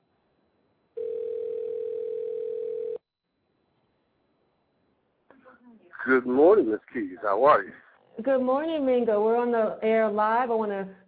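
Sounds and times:
quiet phone line hiss: 1.0 - 3.0
telephone call ringing tone: 1.0 - 3.0
speech: 5.8 - 11.0.

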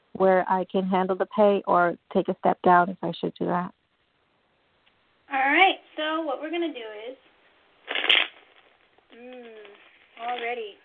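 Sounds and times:
speech: 0.2 - 3.8, 5.3 - 7.2, 9.2 - 10.8
tarot cards being shuffled and laid out: 7.9 - 10.6.

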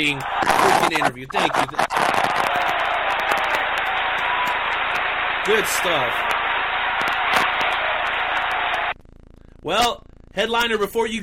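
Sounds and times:
speech: 0.0 - 2.5, 5.5 - 6.4, 9.6 - 11.2
audience applause: 0.0 - 8.9.

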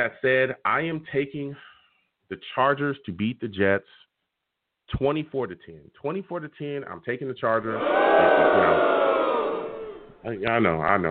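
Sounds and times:
speech: 0.0 - 1.7, 2.3 - 4.0, 4.9 - 9.0, 10.2 - 11.1
audience booing: 7.8 - 10.4.

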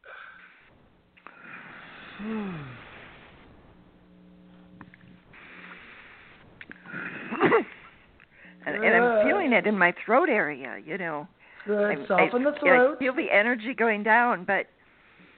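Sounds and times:
deep breathing during a guided breathing exercise: 0.0 - 8.7, 11.4 - 11.8, 14.8 - 15.3
speech: 2.2 - 2.8, 9.6 - 14.8.

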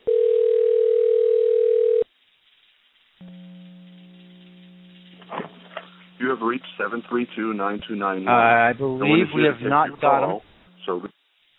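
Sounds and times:
telephone dial tone: 0.0 - 2.1
brief burst of noise: 2.1 - 11.5
speech: 6.2 - 11.1.

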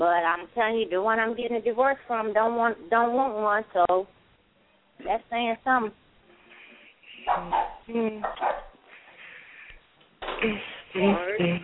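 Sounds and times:
speech: 0.0 - 4.2, 5.0 - 6.0, 7.2 - 8.7, 10.4 - 11.6
dog barking: 7.3 - 8.8.

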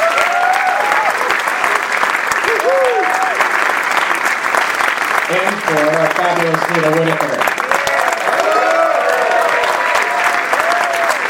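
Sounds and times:
people whooping and calling out: 0.0 - 1.8, 2.4 - 3.5, 7.6 - 11.2
crowd clapping: 0.0 - 11.2
speech: 5.7 - 7.5.

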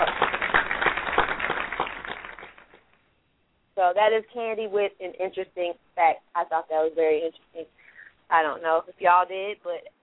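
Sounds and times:
applause: 0.0 - 2.9
speech: 3.9 - 10.0.

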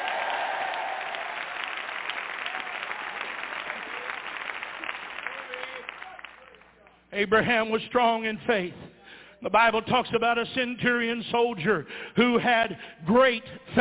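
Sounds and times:
audience clapping and hollering: 0.0 - 7.0
speech: 7.2 - 8.8, 9.4 - 13.7.

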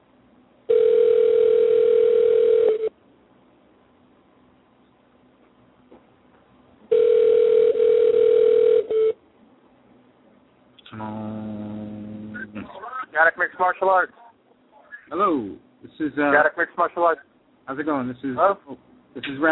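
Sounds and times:
ringback tones of an outgoing phone call: 0.7 - 2.9, 6.9 - 9.2
speech: 13.8 - 14.2, 15.1 - 19.5.

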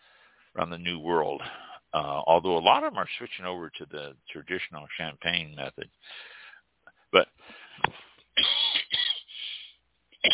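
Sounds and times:
speech: 0.6 - 6.3, 7.1 - 8.5
person clearing throat: 8.4 - 9.3, 10.2 - 10.3.

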